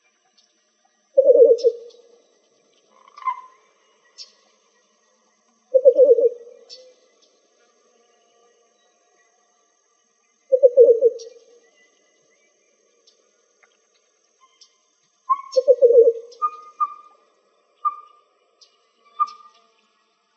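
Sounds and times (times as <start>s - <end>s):
Least Bittern calling: 1.2s - 2.1s, 2.9s - 4.4s, 5.7s - 7.0s, 10.4s - 11.6s, 15.3s - 17.2s, 19.1s - 19.6s.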